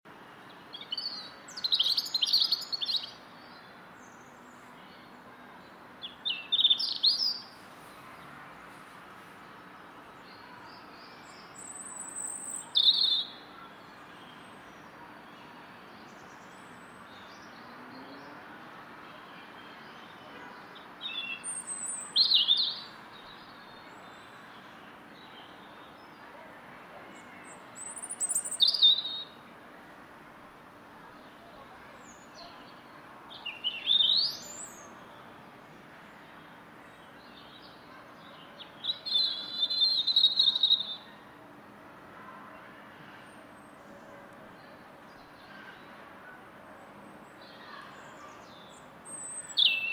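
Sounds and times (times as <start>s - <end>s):
loud garden robin singing in London: 0.5s - 7.6s, 9.5s - 18.4s, 19.2s - 26.2s, 27.1s - 29.5s, 31.1s - 41.2s, 47.3s - 49.9s.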